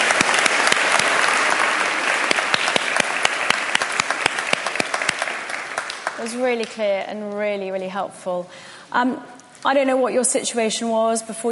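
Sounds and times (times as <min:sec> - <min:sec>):
crowd applause: 0:00.0 - 0:06.8
speech: 0:06.2 - 0:11.4.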